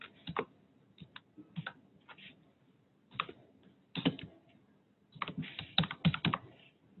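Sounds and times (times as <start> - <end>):
fingers typing a name on a computer keyboard: 0.0 - 1.8, 3.1 - 4.3, 5.2 - 6.5.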